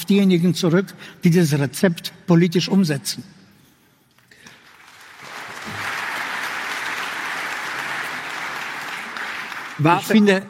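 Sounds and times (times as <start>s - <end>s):
speech: 0.1s - 3.4s, 9.8s - 10.4s
audience clapping: 4.2s - 10.4s.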